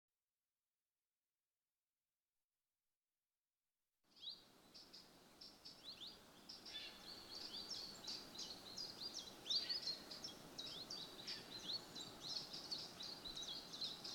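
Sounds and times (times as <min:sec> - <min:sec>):
common chiffchaff song: 0:04.1 - 0:14.1.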